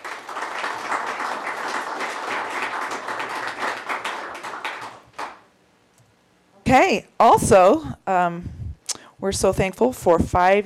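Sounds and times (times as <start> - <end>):
crowd applauding: 0.0 - 5.5
speech: 6.7 - 8.6, 9.2 - 10.6.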